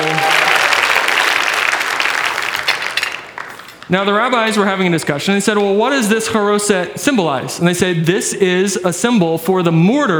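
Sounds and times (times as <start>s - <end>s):
audience applause: 0.0s - 3.9s
speech: 3.9s - 10.1s.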